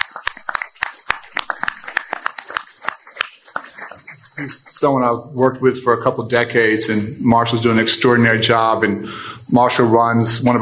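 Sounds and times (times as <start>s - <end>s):
audience applause: 0.0s - 5.2s
speech: 4.4s - 10.6s.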